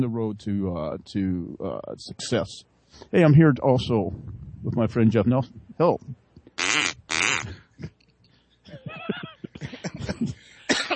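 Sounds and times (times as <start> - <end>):
speech: 0.0 - 6.8, 10.2 - 10.4
duck call being blown: 6.6 - 7.5
laughter: 8.7 - 10.6.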